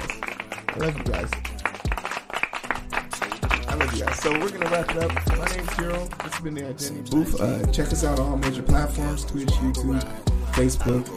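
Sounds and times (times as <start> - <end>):
hand clapping: 0.0 - 6.6
speech: 0.8 - 1.5, 4.0 - 11.1.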